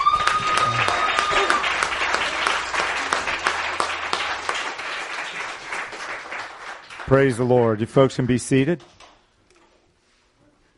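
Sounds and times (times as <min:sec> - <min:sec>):
congregation applauding during a church worship service: 0:00.0 - 0:07.7
speech: 0:07.1 - 0:09.0.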